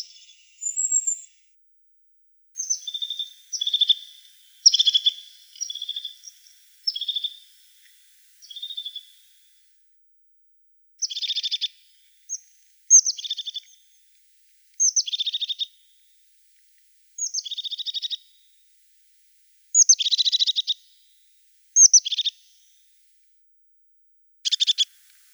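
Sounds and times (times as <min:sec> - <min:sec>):
crested tit calling: 0:02.6 - 0:09.3, 0:11.0 - 0:13.8, 0:14.8 - 0:15.8, 0:17.2 - 0:18.2, 0:19.8 - 0:20.8, 0:21.8 - 0:22.4, 0:24.5 - 0:25.3.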